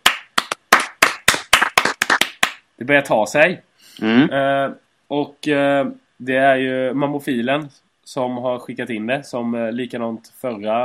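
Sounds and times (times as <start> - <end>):
hand clapping applause: 0.0 - 2.7
speech: 2.8 - 10.8.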